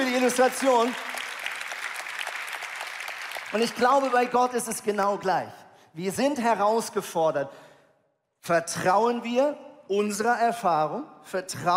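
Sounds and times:
audience applause: 0.0s - 4.4s
speech: 0.2s - 1.1s, 3.5s - 7.6s, 8.4s - 11.7s.

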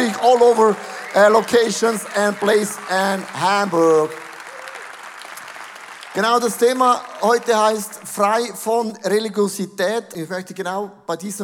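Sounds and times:
roaring audience applause: 0.0s - 8.5s
speech: 0.2s - 4.2s, 6.1s - 11.4s.

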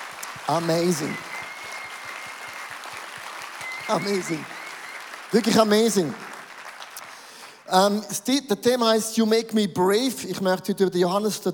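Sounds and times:
audience applause: 0.0s - 7.9s
speech: 0.5s - 1.3s, 3.9s - 4.6s, 5.3s - 6.3s, 7.7s - 11.5s.

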